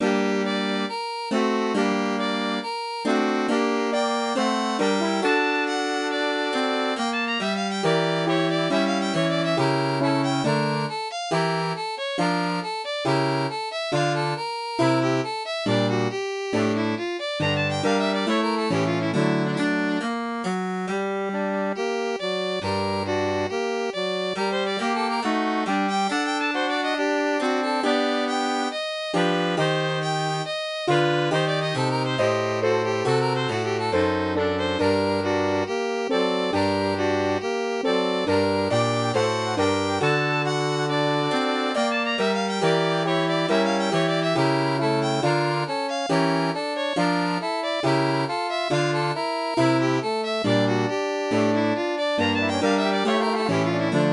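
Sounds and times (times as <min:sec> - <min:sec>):
MIDI music: 0:00.0 - 0:54.1.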